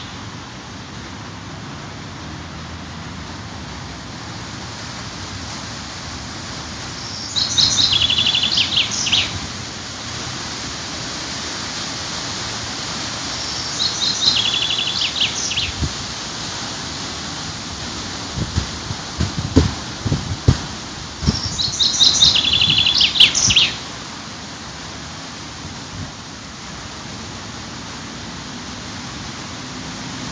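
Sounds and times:
steady hiss: 0.0s - 30.2s
bird trilling: 7.0s - 9.4s, 13.4s - 15.8s, 21.3s - 23.8s
knocks and rustles: 18.4s - 21.4s.

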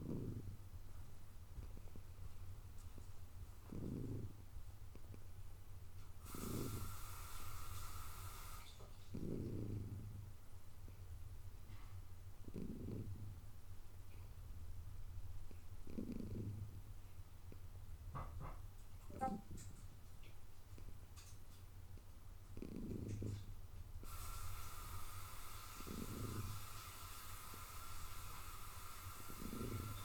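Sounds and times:
cat purring: 0.0s - 21.3s, 21.9s - 30.0s
breathy hiss: 6.2s - 8.9s, 24.0s - 30.0s.

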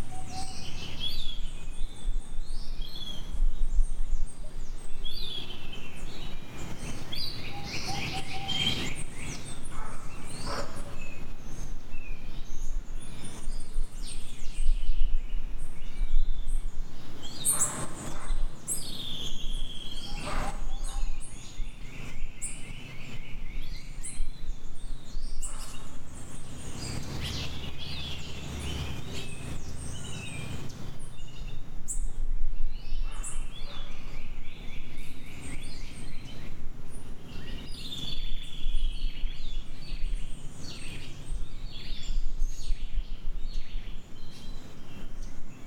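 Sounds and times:
birds chirping in a chorus: 0.0s - 45.6s.

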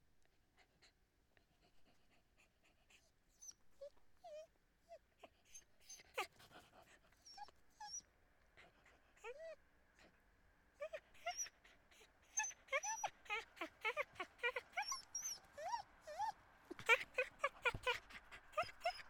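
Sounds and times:
dog yelping and whimpering with high-pitched cries: 2.6s - 8.0s, 8.6s - 9.6s, 10.8s - 19.0s.

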